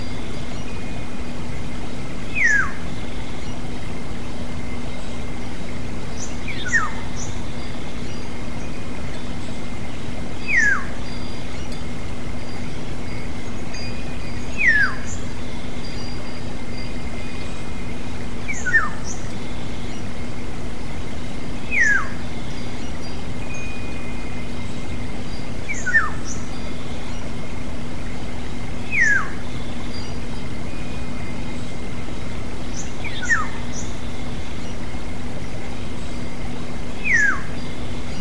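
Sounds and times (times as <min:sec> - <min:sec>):
steady low hum: 0:00.0 - 0:38.2
black-naped oriole giving descending slurred whistle: 0:02.2 - 0:03.6, 0:06.1 - 0:08.8, 0:10.0 - 0:11.8, 0:12.6 - 0:17.7, 0:18.4 - 0:20.1, 0:21.2 - 0:27.4, 0:28.8 - 0:31.7, 0:32.7 - 0:34.9, 0:36.9 - 0:38.2.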